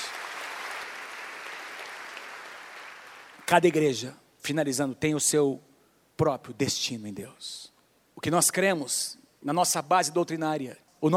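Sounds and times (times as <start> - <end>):
crowd applause: 0.0 - 3.5
speech: 3.5 - 11.1.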